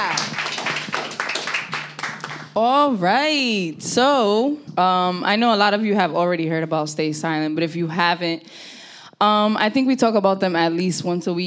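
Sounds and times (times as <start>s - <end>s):
audience clapping: 0.0s - 2.6s
speech: 2.6s - 11.4s.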